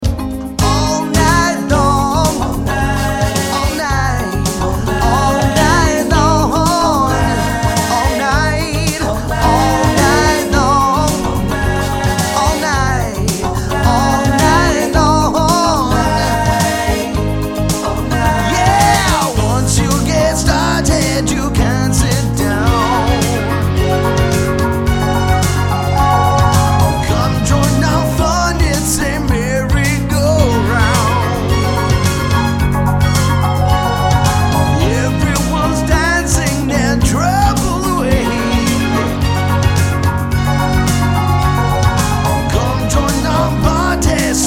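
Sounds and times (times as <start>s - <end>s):
cover band playing: 0.0s - 44.4s.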